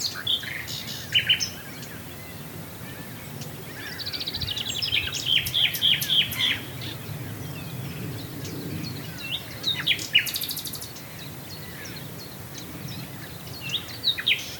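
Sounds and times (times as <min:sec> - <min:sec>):
common nightingale singing: 0:00.0 - 0:14.5.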